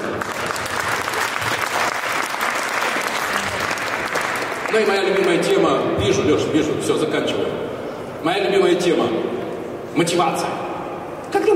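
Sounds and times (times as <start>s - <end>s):
audience applause: 0.0s - 5.7s
speech: 4.7s - 9.3s, 10.0s - 10.6s.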